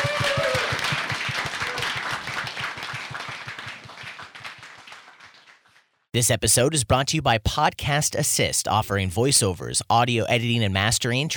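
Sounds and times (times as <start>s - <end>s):
audience applause: 0.0s - 5.8s
speech: 6.2s - 11.3s.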